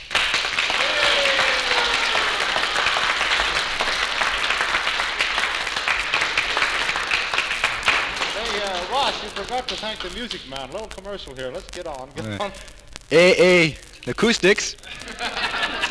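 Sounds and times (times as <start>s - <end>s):
audience applause: 0.0s - 11.0s, 14.2s - 15.9s
speech: 9.5s - 15.2s
laughter: 12.2s - 12.5s, 14.8s - 15.9s.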